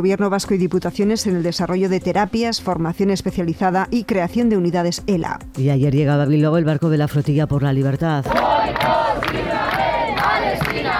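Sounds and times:
speech: 0.0s - 9.4s
crowd shouting and cheering: 8.3s - 10.9s.

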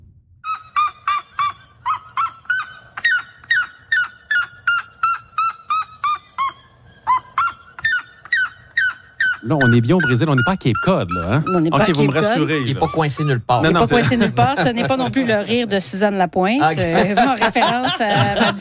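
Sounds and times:
red-legged seriema Cariama cristata calling: 0.4s - 16.0s
speech: 9.4s - 18.5s
laughter: 11.2s - 16.0s, 16.6s - 18.5s.

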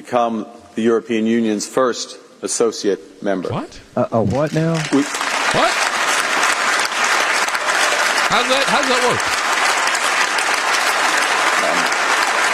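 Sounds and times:
speech: 0.0s - 5.8s, 8.3s - 9.4s
audience clapping: 4.3s - 12.5s.

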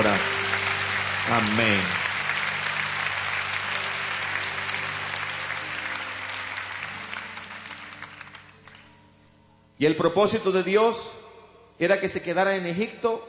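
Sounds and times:
audience applauding: 0.0s - 9.0s
speech: 1.3s - 2.0s, 9.8s - 11.2s, 11.8s - 13.2s.

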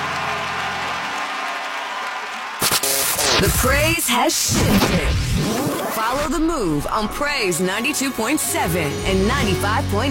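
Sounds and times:
crowd clapping steadily and loudly: 0.0s - 3.6s
brief sharp burst: 2.6s - 5.4s
speech: 3.4s - 10.0s.

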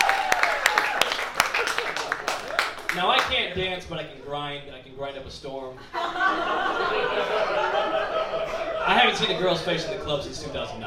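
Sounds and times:
audience clapping in agreement: 0.0s - 3.6s
speech: 3.0s - 8.2s, 8.9s - 10.8s
laughter: 5.8s - 10.8s.

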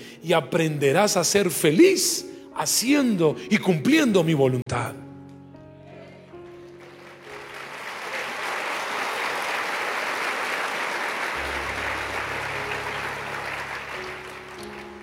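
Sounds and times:
speech: 0.2s - 5.0s
audience applauding: 6.4s - 15.0s.

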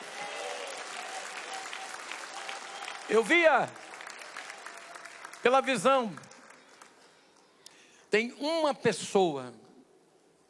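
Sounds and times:
audience clapping: 0.0s - 7.6s
speech: 3.1s - 3.9s, 5.4s - 6.3s, 8.1s - 9.6s.

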